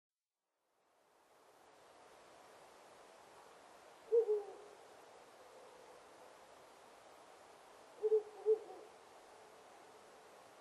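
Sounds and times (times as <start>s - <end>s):
owl giving low hoots: 4.1s - 4.8s, 8.0s - 9.0s.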